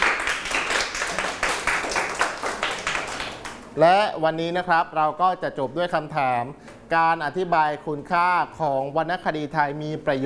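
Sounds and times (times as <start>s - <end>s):
classroom clapping: 0.0s - 3.7s
speech: 3.8s - 10.2s.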